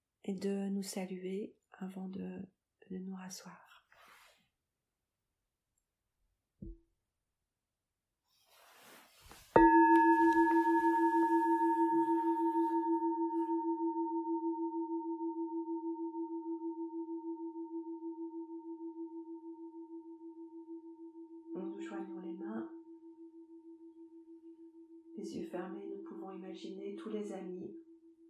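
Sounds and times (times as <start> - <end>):
speech: 0.3 - 3.8, 26.6 - 27.8
soft rustling: 8.3 - 12.8
meditation bell ringing: 9.5 - 18.9.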